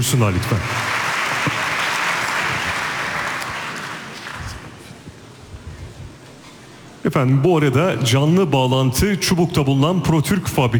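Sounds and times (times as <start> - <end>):
speech: 0.0 - 1.6, 7.0 - 10.7
audience applause: 0.0 - 4.8.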